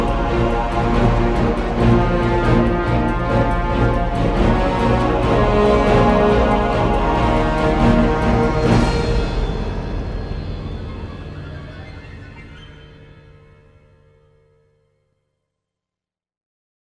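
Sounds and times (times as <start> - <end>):
battle music: 0.0 - 12.4.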